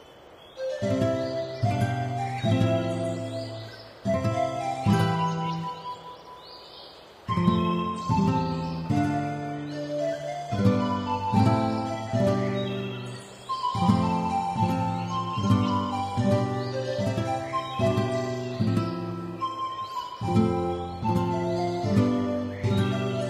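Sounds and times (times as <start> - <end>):
music: 0.6 - 6.2, 7.3 - 23.2.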